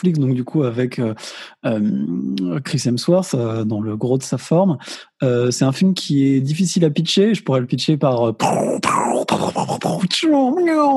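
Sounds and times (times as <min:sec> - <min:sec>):
speech: 0:00.0 - 0:10.9
voice imitating dying groans: 0:08.4 - 0:10.1.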